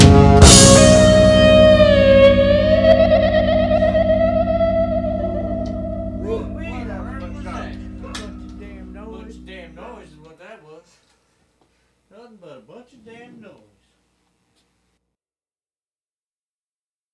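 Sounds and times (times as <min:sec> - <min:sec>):
harsh noise: 0:00.0 - 0:10.2.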